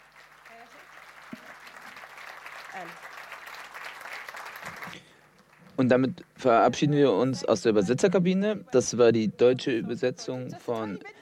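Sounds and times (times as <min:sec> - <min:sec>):
audience applause: 0:00.0 - 0:05.9
speech: 0:02.8 - 0:03.2, 0:05.8 - 0:11.2.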